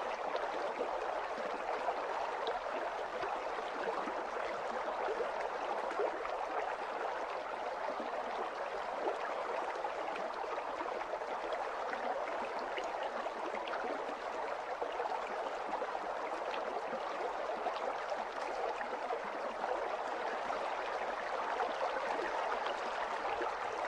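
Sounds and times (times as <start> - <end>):
gentle water stream: 0.0 - 23.8.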